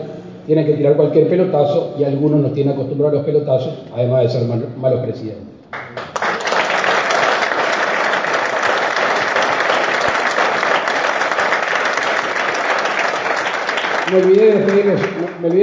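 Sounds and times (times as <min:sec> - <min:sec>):
speech: 0:00.5 - 0:05.6, 0:14.1 - 0:15.6
audience applause: 0:05.8 - 0:15.6.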